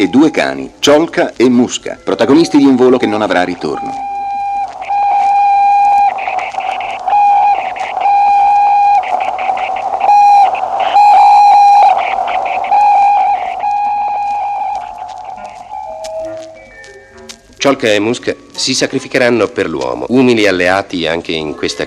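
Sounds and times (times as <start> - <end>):
speech: 0.0 - 4.1, 17.7 - 21.8
satellite radio signal transmission: 0.0 - 17.1.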